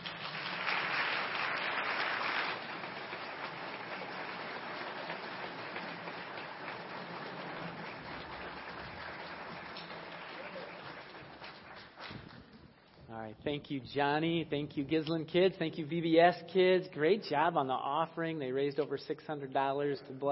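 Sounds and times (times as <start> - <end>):
audience applause: 0.0 - 12.7
speech: 13.2 - 20.3.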